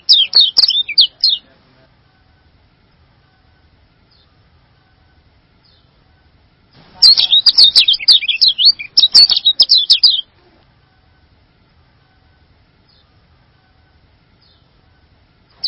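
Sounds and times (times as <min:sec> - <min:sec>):
bird song: 0:00.0 - 0:01.5, 0:04.1 - 0:04.4, 0:05.6 - 0:06.0, 0:07.0 - 0:10.3, 0:12.8 - 0:13.2, 0:14.4 - 0:14.8.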